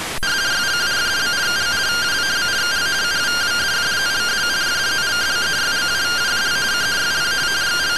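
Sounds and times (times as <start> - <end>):
received RTTY radioteletype signal: 0.2 - 7.9.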